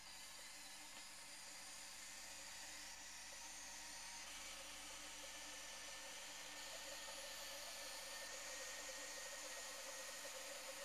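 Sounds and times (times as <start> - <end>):
steam leak hissing: 0.2 - 10.8.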